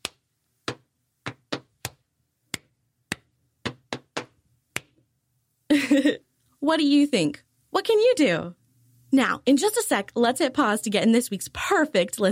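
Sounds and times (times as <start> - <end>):
rhythmic hand claps: 0.0 - 5.0
speech: 5.8 - 12.3.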